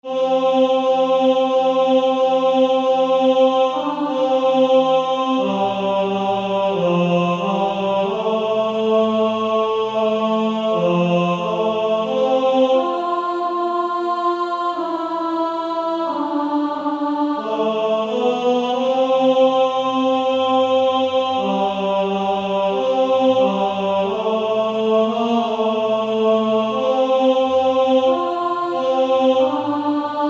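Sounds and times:
male choir singing, tenor voice: 0:00.0 - 0:30.2.

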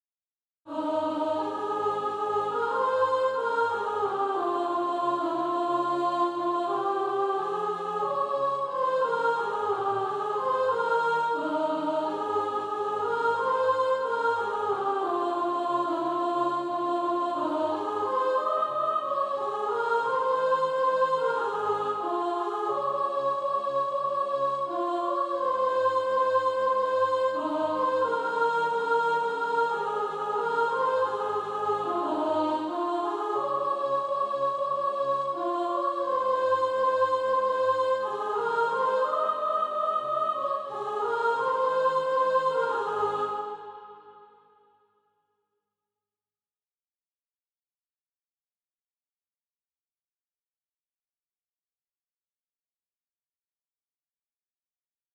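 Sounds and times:
soprano singing practice music: 0:00.7 - 0:43.8.

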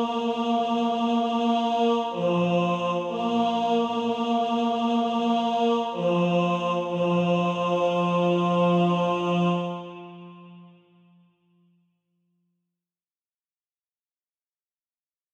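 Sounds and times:
tenor singing: 0:00.0 - 0:10.7.

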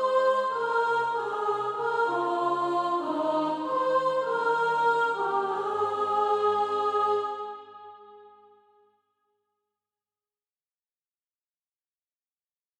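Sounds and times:
soprano singing: 0:00.0 - 0:08.2.

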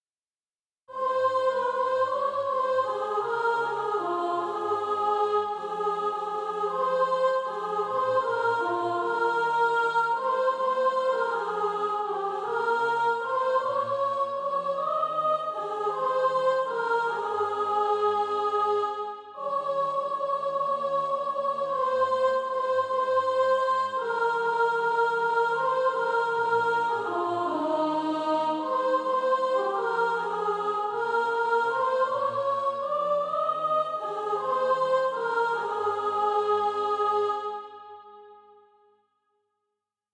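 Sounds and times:
soprano singing: 0:00.9 - 0:37.7.

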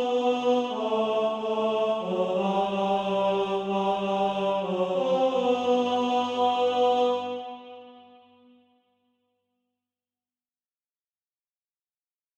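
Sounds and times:
tenor SATB practice part: 0:00.0 - 0:08.1.

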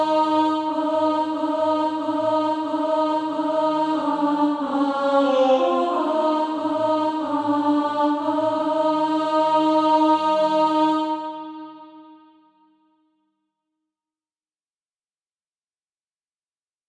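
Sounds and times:
alto voice singing practice music: 0:00.0 - 0:12.2.

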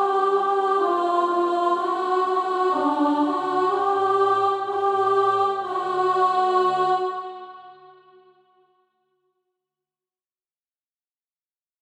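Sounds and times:
alto voice singing practice music: 0:00.0 - 0:08.4.

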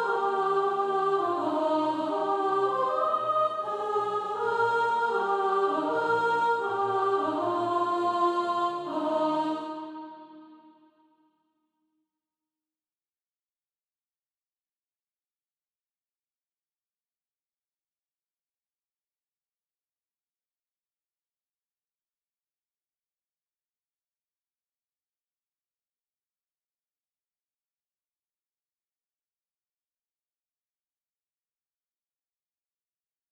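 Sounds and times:
soprano singing practice music: 0:00.0 - 0:10.7.

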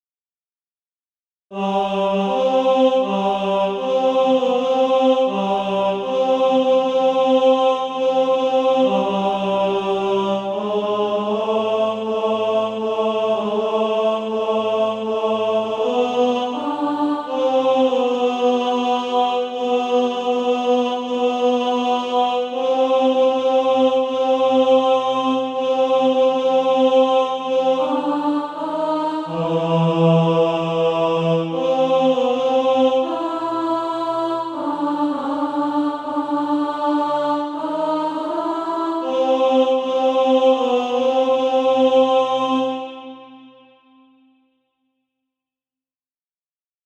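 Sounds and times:
tenor SATB practice part: 0:01.5 - 0:43.6.

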